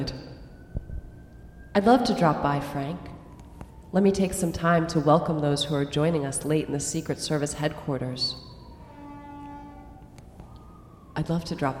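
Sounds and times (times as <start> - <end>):
speech: 0.0 - 0.3, 1.8 - 3.1, 3.9 - 8.5, 11.2 - 11.7
ambulance siren passing outside: 0.0 - 11.7.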